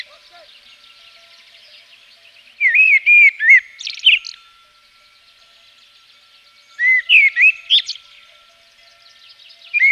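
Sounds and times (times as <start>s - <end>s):
Common blackbird song of fluting whistles in Provence: 0.0s - 9.8s.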